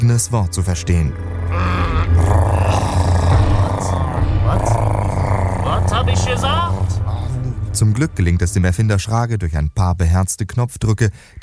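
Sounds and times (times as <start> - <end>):
speech: 0.0 - 2.5, 7.8 - 11.4
loud growling stomachs: 1.2 - 7.4.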